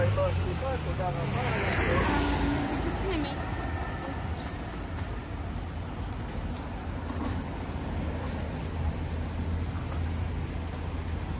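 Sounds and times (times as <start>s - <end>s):
voices on a Tel Aviv street: 0.0s - 6.2s
vehicle passing by: 0.0s - 10.0s
low traffic rumble in Tel Aviv street: 0.0s - 11.3s.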